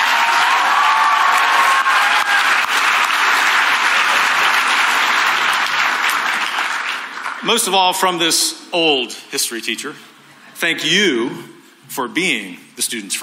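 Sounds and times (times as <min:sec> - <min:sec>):
faint cheers: 0:00.0 - 0:02.8
audience applause: 0:00.0 - 0:07.7
speech: 0:07.5 - 0:13.2.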